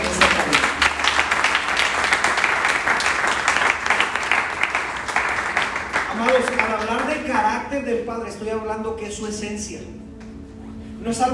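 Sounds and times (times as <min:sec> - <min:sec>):
audience applause: 0:00.0 - 0:07.3
speech: 0:07.9 - 0:10.0, 0:11.0 - 0:11.3.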